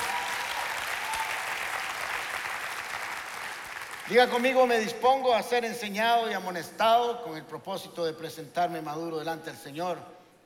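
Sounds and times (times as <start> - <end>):
audience applause: 0.0 - 4.5
speech: 4.1 - 10.4.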